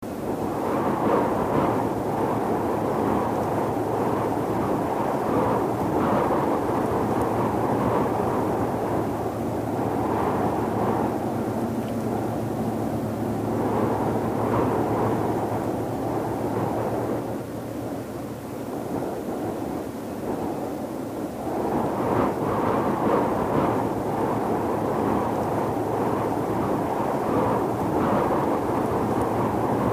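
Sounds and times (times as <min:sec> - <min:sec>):
medium ambient wind: 0:00.0 - 0:29.9.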